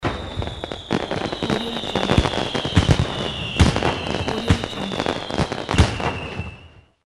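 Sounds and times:
firework: 0:00.0 - 0:07.0.

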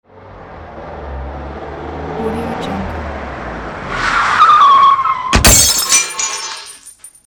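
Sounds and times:
car crash: 0:03.8 - 0:07.2.

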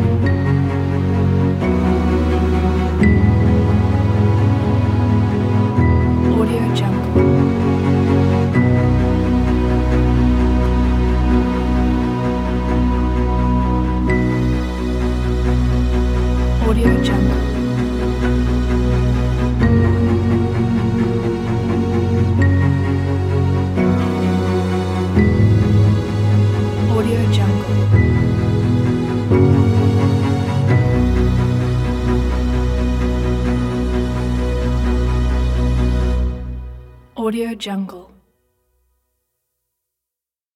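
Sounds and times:
violin: 0:00.0 - 0:36.8
cello: 0:00.0 - 0:37.1.

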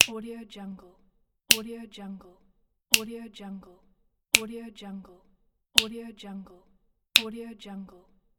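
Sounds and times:
finger snap: 0:00.0 - 0:00.2, 0:01.5 - 0:01.7, 0:02.9 - 0:03.2, 0:04.4 - 0:04.6, 0:05.8 - 0:06.0, 0:07.2 - 0:07.4.

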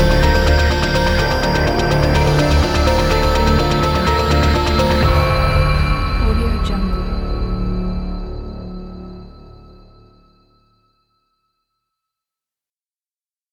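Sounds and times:
tense music: 0:00.0 - 0:10.8.

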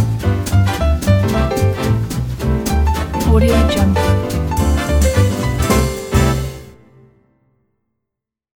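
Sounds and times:
fast swing jazz: 0:00.0 - 0:06.7.

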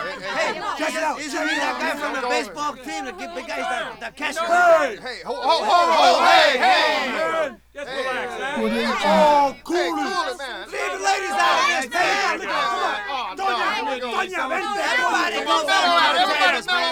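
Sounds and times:
constant rowdy bar conversation: 0:00.0 - 0:16.8
people hollering in a bar: 0:08.6 - 0:09.6.

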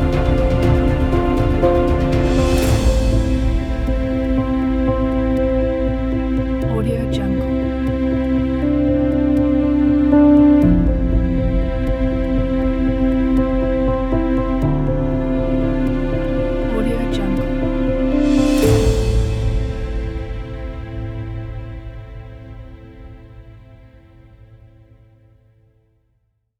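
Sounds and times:
emotional documentary piano music: 0:00.0 - 0:24.6.

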